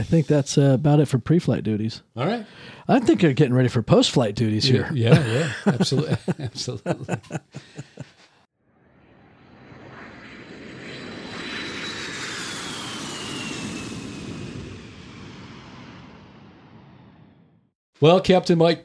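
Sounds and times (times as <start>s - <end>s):
speech: 0.0s - 8.1s, 18.0s - 18.8s
laughter: 2.8s - 3.4s, 4.6s - 8.4s
jet airliner engines roaring while parking at the jet bridge: 9.0s - 17.2s.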